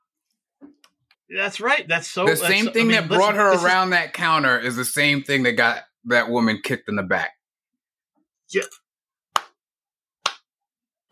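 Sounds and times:
speech: 1.3s - 7.4s, 8.5s - 8.8s
hand clapping: 9.3s - 9.6s, 10.2s - 11.1s.

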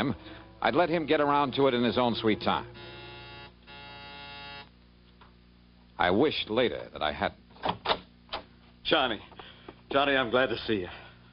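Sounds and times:
speech: 0.0s - 3.0s, 6.0s - 7.9s, 8.9s - 9.3s, 9.9s - 11.0s
harsh electric doorbell buzzer: 2.0s - 4.7s.

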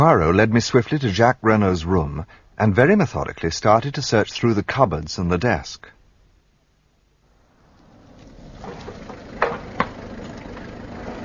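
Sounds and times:
speech: 0.0s - 6.0s
car engine driving up and idling: 7.3s - 11.2s
sharp clunks: 8.6s - 10.1s.

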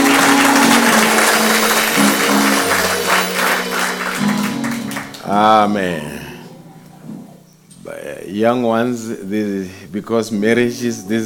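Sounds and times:
audience applause: 0.0s - 5.7s
speech: 5.4s - 6.1s, 8.3s - 11.2s.

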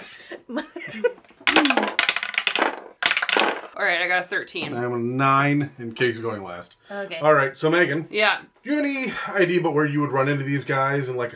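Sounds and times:
speech: 0.5s - 1.1s, 3.8s - 11.3s
dice being rolled: 1.4s - 3.8s.

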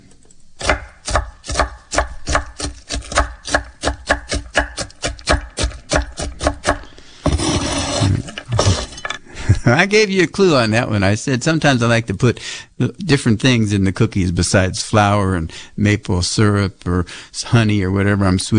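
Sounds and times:
chopping nuts on a chopping board: 0.6s - 7.7s
speech: 9.7s - 18.5s.

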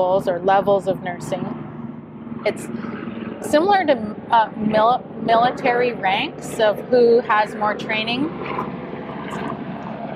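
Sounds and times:
speech: 0.0s - 1.6s, 2.4s - 8.7s
helicopter passing overhead: 0.0s - 10.1s.

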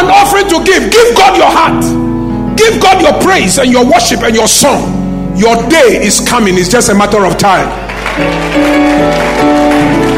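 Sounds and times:
speech: 0.6s - 10.1s
audience clapping hands: 7.5s - 10.1s.

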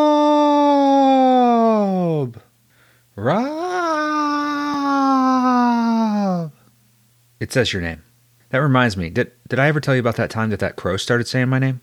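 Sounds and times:
voice imitating a wendigo howl: 0.0s - 2.4s, 3.2s - 6.6s
speech: 3.2s - 3.5s, 7.5s - 11.8s.

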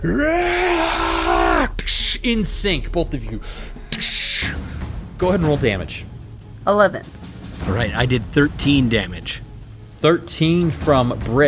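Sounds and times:
speech: 0.0s - 0.7s, 2.2s - 4.1s, 5.2s - 9.4s, 10.0s - 11.4s
players screaming battle cries: 0.0s - 2.2s.

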